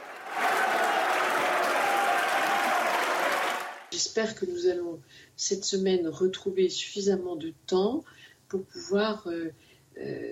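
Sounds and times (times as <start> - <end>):
applause from large group in parliament chamber: 0.0 - 4.0
speech: 4.0 - 10.3.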